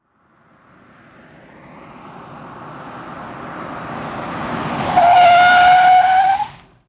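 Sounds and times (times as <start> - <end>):
Cadillac skidding to a stop: 4.2 - 6.7.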